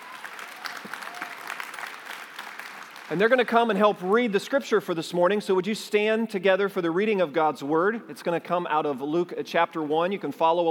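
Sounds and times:
audience applause in a church during a Christmas-week service: 0:00.0 - 0:03.5
speech: 0:03.1 - 0:10.6.

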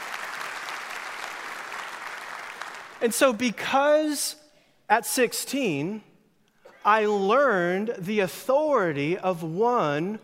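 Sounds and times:
audience applause: 0:00.0 - 0:03.0
speech: 0:03.0 - 0:06.1, 0:06.8 - 0:10.2.

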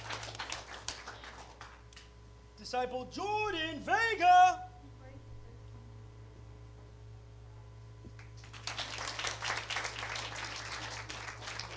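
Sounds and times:
audience clapping: 0:00.0 - 0:02.1, 0:08.2 - 0:11.7
speech: 0:02.6 - 0:04.7.

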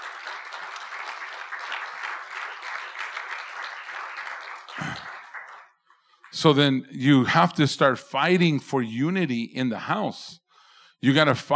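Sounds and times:
audience applause: 0:00.0 - 0:06.6
speech: 0:06.4 - 0:10.4, 0:11.0 - 0:11.5.

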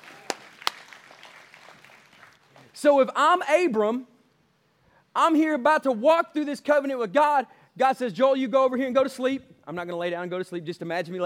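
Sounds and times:
audience clapping: 0:00.0 - 0:02.8
speech: 0:02.8 - 0:04.1, 0:05.2 - 0:11.2.

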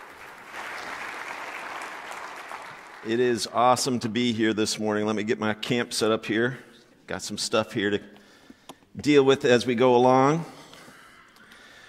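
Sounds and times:
audience applause welcoming speaker: 0:00.0 - 0:03.2
speech: 0:03.0 - 0:08.2, 0:09.0 - 0:10.6.

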